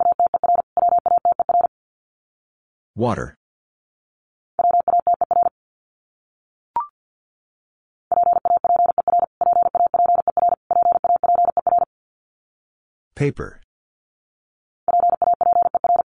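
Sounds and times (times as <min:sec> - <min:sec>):
Morse code beeps at about 50 words per minute: 0:00.0 - 0:01.7, 0:04.6 - 0:05.5, 0:08.1 - 0:11.9, 0:14.9 - 0:16.0
speech: 0:03.0 - 0:03.4, 0:13.2 - 0:13.6.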